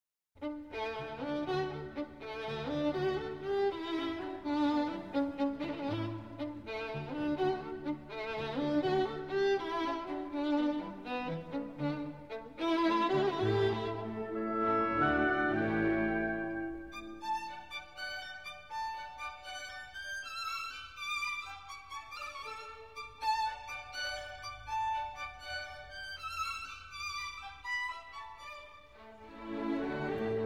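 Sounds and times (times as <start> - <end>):
violin concerto music: 0.4 - 30.4.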